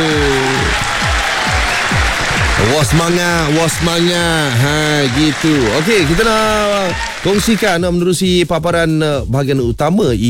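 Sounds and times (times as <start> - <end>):
applause for a listener on a Malay-language morning show: 0.0 - 8.0
speech: 2.8 - 10.2.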